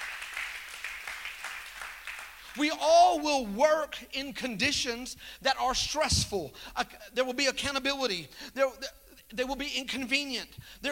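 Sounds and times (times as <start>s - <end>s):
audience clapping: 0.0s - 2.7s
speech: 2.6s - 10.9s.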